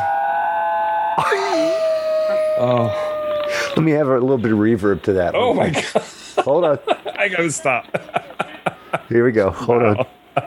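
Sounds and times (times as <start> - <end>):
dog making an eerie howling noise: 0.0 - 4.2
laughter: 1.2 - 3.8, 5.4 - 10.4
speech: 2.6 - 8.4, 9.0 - 10.4.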